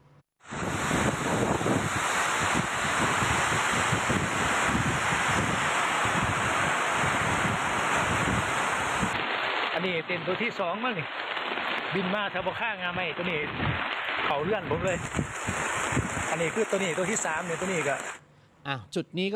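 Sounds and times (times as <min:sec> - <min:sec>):
heavy rain: 0:00.4 - 0:18.2
storm wind buffeting the microphone: 0:00.5 - 0:09.4, 0:13.4 - 0:18.2
speech: 0:10.1 - 0:11.3, 0:11.9 - 0:15.6, 0:16.3 - 0:19.3.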